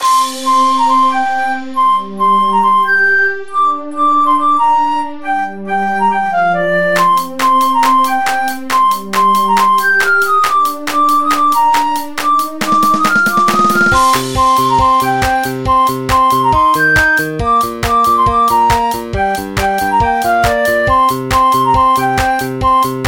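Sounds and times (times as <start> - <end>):
flute: 0.0 - 23.0.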